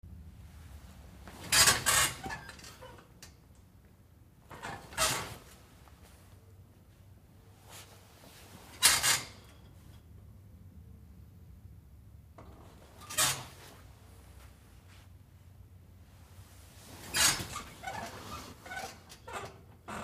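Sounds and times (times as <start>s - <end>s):
body getting into and sitting down on bunk bed: 0.1s - 10.5s, 12.3s - 20.0s
bunk bed spring squeaks: 1.4s - 3.0s, 13.0s - 13.6s, 17.0s - 20.0s.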